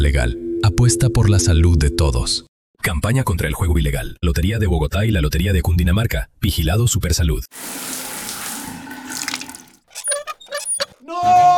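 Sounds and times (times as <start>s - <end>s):
speech: 0.0s - 8.1s
water pouring from a bucket while bathing: 7.5s - 11.0s.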